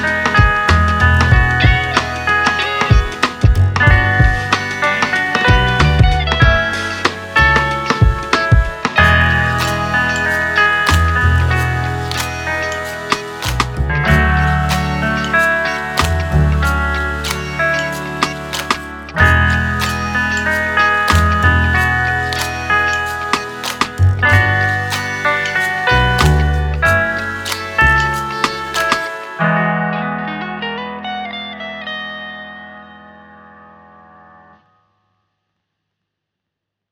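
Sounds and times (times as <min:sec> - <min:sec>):
chill music beat: 0:00.0 - 0:29.5.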